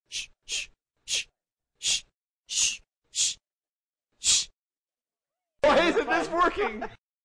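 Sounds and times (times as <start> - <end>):
person shushing: 0.1 - 3.4, 4.2 - 4.5
laughter: 5.6 - 7.0.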